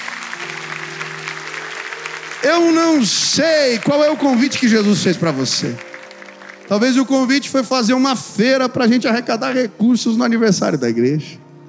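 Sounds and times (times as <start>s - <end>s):
audience applauding: 0.0s - 8.2s
speech: 2.4s - 5.9s, 6.7s - 11.4s.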